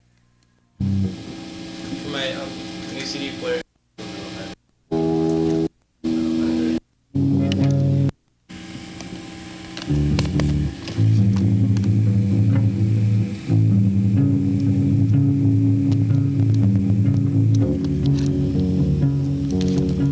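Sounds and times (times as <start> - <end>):
calypso drone: 0.8 - 3.0, 4.9 - 8.1, 9.8 - 20.1.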